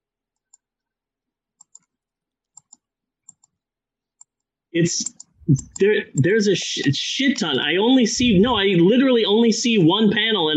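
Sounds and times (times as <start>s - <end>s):
faint computer mouse clicks: 0.4s - 0.7s, 1.6s - 3.6s
speech: 4.7s - 10.5s.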